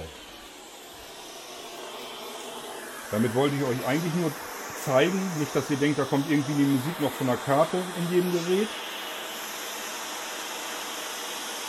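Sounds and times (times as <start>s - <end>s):
radio receiver static hiss with transmitter off: 0.0s - 0.8s, 1.6s - 9.4s
speech: 3.1s - 8.9s.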